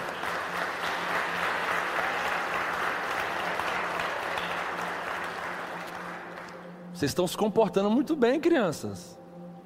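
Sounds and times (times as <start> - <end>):
crowd applause: 0.0 - 6.6
speech: 7.0 - 9.2.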